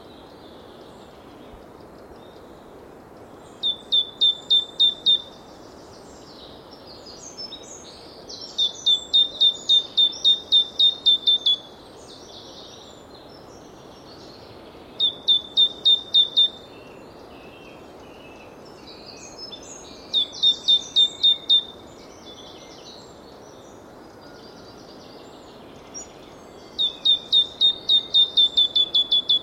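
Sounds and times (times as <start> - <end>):
great tit call series: 3.5 - 5.5, 8.4 - 12.2, 15.0 - 16.7, 19.2 - 22.3, 25.8 - 29.4.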